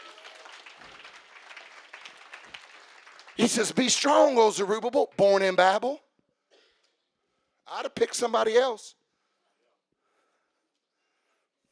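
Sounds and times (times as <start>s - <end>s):
audience clapping: 0.0s - 5.6s
speech: 3.4s - 6.0s, 7.9s - 9.0s.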